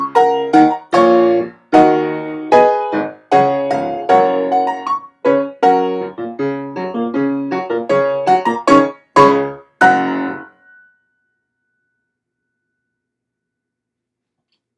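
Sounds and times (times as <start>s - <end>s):
piano improvisation in F sharp major: 0.0s - 10.8s.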